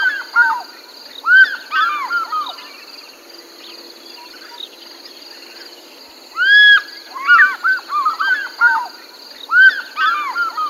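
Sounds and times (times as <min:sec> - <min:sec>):
African fish eagle giving ringing yelping calls: 0:01.3 - 0:02.6, 0:06.4 - 0:08.9, 0:09.5 - 0:10.6.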